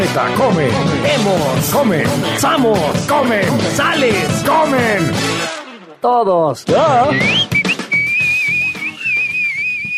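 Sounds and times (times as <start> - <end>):
speech: 0.1 - 7.5
whistled imitation of a singing canary: 7.1 - 9.9.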